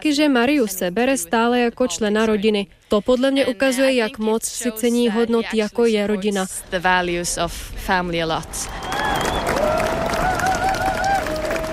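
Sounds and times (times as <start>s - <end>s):
speech: 0.0s - 9.4s
crowd applause: 8.5s - 11.7s.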